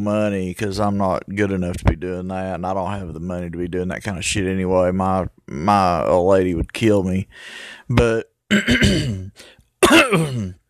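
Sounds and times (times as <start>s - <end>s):
speech: 0.0s - 10.6s
man coughing and clearing his throat after choking on hamburger: 8.5s - 10.6s.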